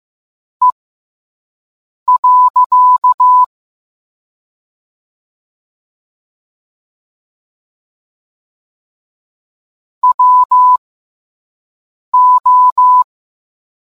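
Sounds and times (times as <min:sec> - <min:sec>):
morse code beeps: 0:02.1 - 0:03.5, 0:10.0 - 0:10.8, 0:12.2 - 0:13.1.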